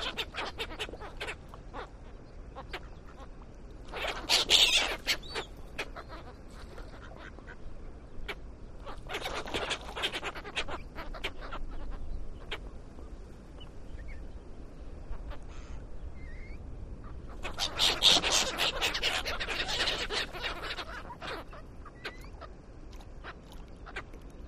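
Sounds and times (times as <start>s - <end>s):
seagulls fighting at a lake: 0.0s - 1.9s, 3.9s - 7.7s, 8.3s - 12.6s, 15.2s - 24.1s.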